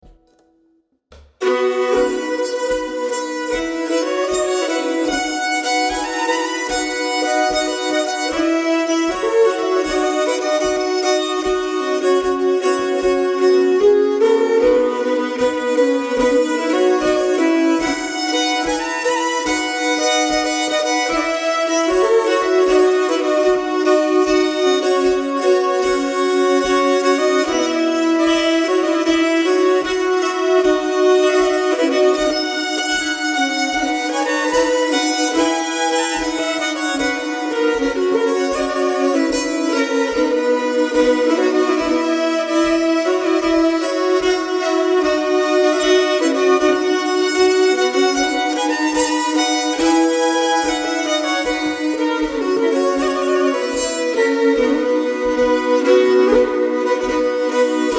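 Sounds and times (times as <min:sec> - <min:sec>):
bagpipe playing a bridal march: 0:01.4 - 0:57.9.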